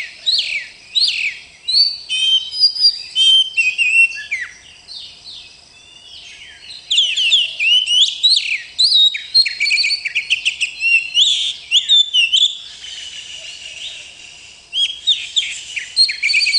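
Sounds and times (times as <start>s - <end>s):
Oriental magpie-robin singing in rolling style: 0.0s - 16.5s.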